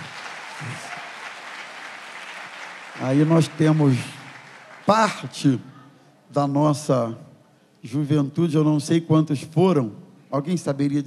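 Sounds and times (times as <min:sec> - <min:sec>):
church gathering applauding arriving young people: 0:00.0 - 0:05.7
speech: 0:03.0 - 0:04.2, 0:04.9 - 0:05.7, 0:06.3 - 0:11.0.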